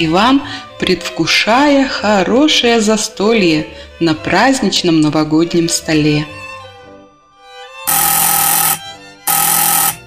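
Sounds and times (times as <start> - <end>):
speech: 0.0 - 6.4
doorbell ringing: 7.9 - 10.0.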